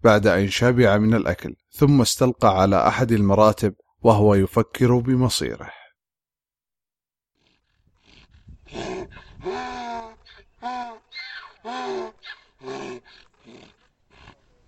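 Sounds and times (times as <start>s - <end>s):
speech: 0.0s - 5.8s, 8.7s - 9.7s
dying donkey's anguished cries: 7.4s - 14.6s.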